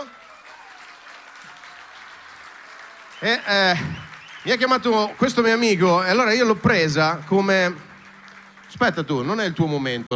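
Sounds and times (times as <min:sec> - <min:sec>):
faint audience applause: 0:00.0 - 0:10.1
speech: 0:03.2 - 0:07.9, 0:08.7 - 0:10.1.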